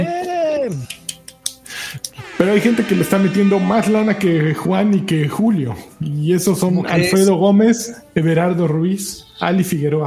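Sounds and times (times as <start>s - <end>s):
descending tonal whoop: 2.2s - 6.2s
speech: 2.4s - 10.0s.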